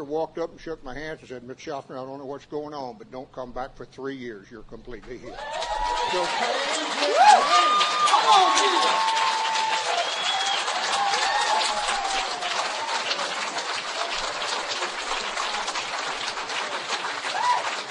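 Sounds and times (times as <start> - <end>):
speech: 0.0 - 9.2
scattered cheers and whoops: 5.3 - 14.5, 17.2 - 17.8
audience applause: 5.3 - 17.8.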